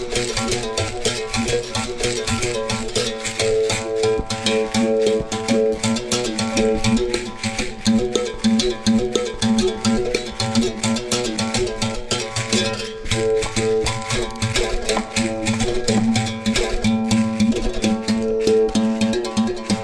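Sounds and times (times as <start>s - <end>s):
berimbau: 0.0s - 19.8s.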